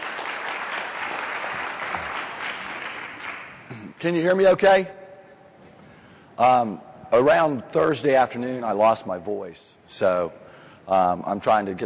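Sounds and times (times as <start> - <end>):
audience applause welcoming a speaker at a presentation: 0.0 - 3.7
speech: 4.0 - 5.0, 6.4 - 11.8.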